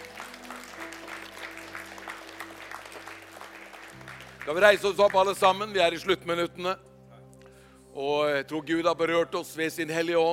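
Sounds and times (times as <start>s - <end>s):
strong applause from audience: 0.0s - 5.7s
speech: 4.5s - 6.9s, 8.0s - 10.3s.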